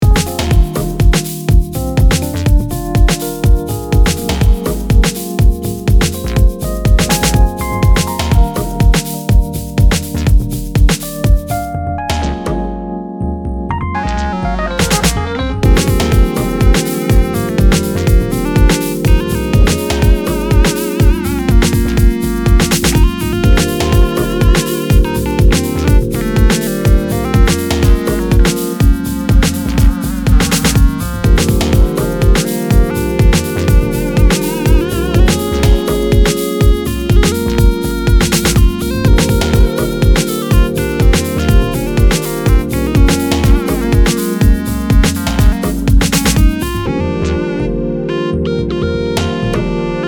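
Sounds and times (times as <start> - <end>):
instrumental music: 0.0 - 50.0.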